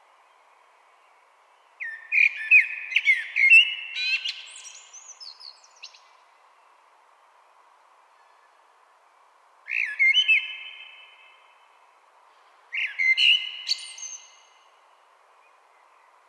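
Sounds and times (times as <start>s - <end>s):
common blackbird singing: 1.8s - 6.1s, 9.7s - 11.5s, 12.7s - 14.7s.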